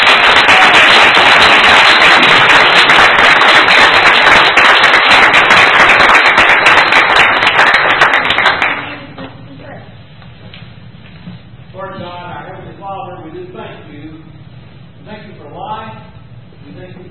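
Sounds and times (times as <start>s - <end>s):
loud sustained crowd applause: 0.0s - 9.0s.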